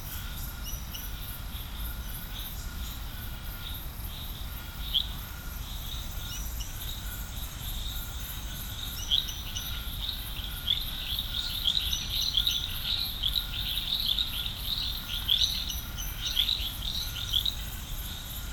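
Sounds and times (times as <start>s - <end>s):
frog chorus at Serrinha do Alambari in Brazil: 0.0s - 18.5s.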